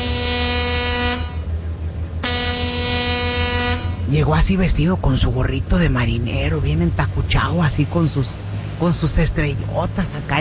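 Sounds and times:
big ship's horn blasts: 0:00.0 - 0:04.6
speech: 0:04.1 - 0:10.3.

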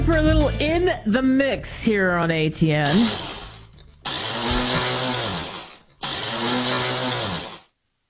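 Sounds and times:
speech: 0:00.1 - 0:03.3
loud blender running: 0:02.8 - 0:07.7.

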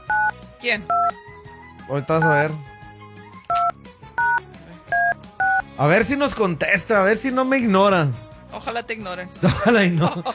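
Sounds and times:
phone keypad tones as a number is dialed: 0:00.0 - 0:00.3, 0:03.5 - 0:05.6
speech: 0:00.6 - 0:02.7, 0:05.8 - 0:10.3
laughter: 0:09.4 - 0:10.3.

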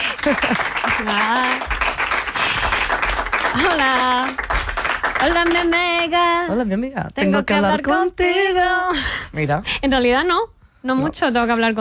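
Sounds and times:
audience applause: 0:00.0 - 0:06.1
speech: 0:00.2 - 0:01.7, 0:03.5 - 0:04.5, 0:05.2 - 0:11.7.

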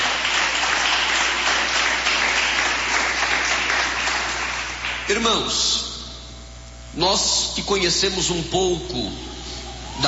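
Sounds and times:
audience applause: 0:00.0 - 0:05.2
speech: 0:05.1 - 0:05.8, 0:07.0 - 0:09.3.

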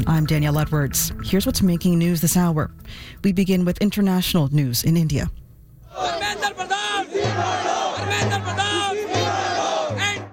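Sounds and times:
low pulsing beat: 0:00.0 - 0:02.9, 0:06.0 - 0:10.3
speech: 0:00.0 - 0:09.0
crowd of young demonstrators shouting and chanting: 0:05.9 - 0:10.3.

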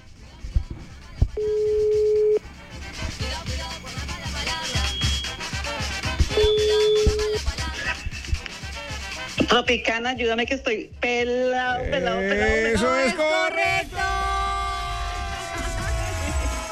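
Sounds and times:
busy music: 0:00.0 - 0:16.7
telephone line ringing on a radio call: 0:01.4 - 0:02.4, 0:06.3 - 0:07.5
speech: 0:09.5 - 0:14.1.

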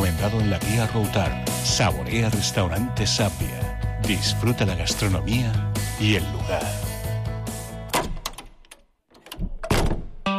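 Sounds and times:
speech: 0:00.2 - 0:06.8
heavy armored door closing thunk: 0:09.3 - 0:10.2.

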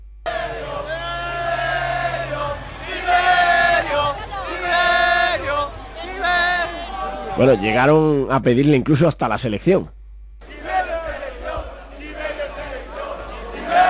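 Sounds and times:
crowd shouting: 0:00.3 - 0:08.3, 0:10.4 - 0:13.8
laughter: 0:00.3 - 0:08.3, 0:10.4 - 0:13.8
speech: 0:07.4 - 0:10.0.

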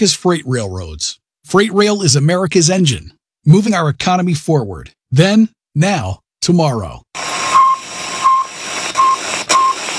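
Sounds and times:
speech: 0:00.0 - 0:07.3
Sputnik satellite radio beeps: 0:07.2 - 0:09.9
loud static hiss: 0:07.2 - 0:09.9.

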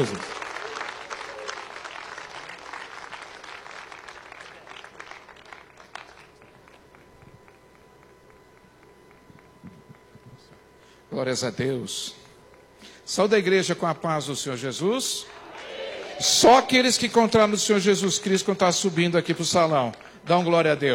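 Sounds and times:
speech: 0:00.0 - 0:00.3, 0:11.2 - 0:12.2, 0:13.1 - 0:15.4, 0:16.2 - 0:20.9
crowd clapping: 0:00.0 - 0:10.2, 0:15.2 - 0:20.5.

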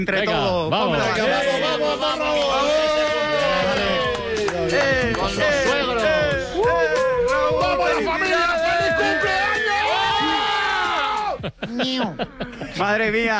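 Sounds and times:
speech: 0:00.0 - 0:01.5, 0:11.6 - 0:13.3
group of people cheering and shouting: 0:00.9 - 0:11.5
laughter: 0:11.4 - 0:12.8.

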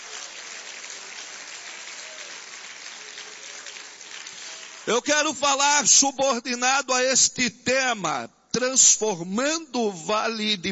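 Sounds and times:
audience applause: 0:00.0 - 0:05.0
speech: 0:04.9 - 0:10.7.

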